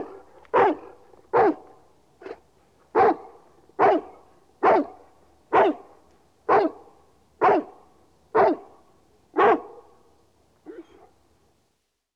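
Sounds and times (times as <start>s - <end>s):
dog barking: 0.0s - 7.8s, 8.4s - 8.8s, 9.4s - 10.0s.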